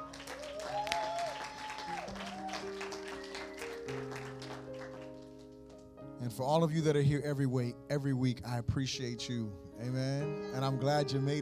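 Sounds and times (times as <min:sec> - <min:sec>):
audience clapping to welcome visitors at a church service: 0:00.0 - 0:05.9
sustained keyboard chords: 0:02.7 - 0:11.4
speech: 0:06.3 - 0:11.4.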